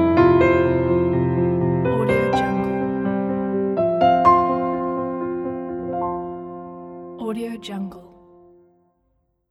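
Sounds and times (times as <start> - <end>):
commercial piano logo music: 0.0 - 8.9.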